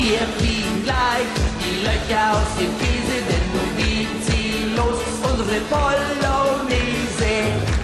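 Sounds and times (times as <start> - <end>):
German schlager song: 0.0 - 7.8.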